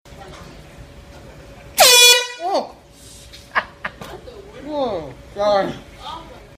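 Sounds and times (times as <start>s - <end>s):
air horn in subway: 1.8s - 2.6s.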